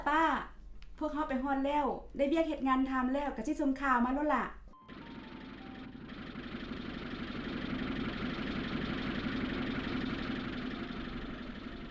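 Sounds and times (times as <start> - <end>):
speech: 0.0 - 5.0
vehicle engine idling as it arrives: 4.8 - 11.8.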